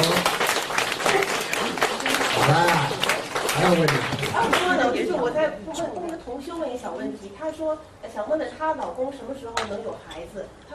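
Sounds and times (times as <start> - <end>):
applause: 0.0 - 4.7
speech: 3.7 - 10.7.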